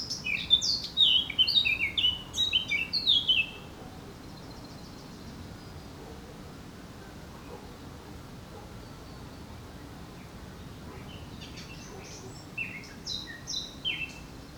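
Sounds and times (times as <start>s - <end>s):
Eurasian blackcap singing: 0.0s - 3.6s, 11.1s - 14.5s.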